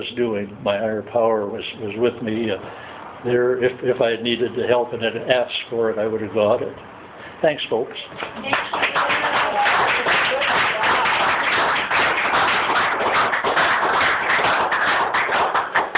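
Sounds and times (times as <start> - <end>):
speech: 0.0 - 9.2
audience applause: 8.4 - 15.9.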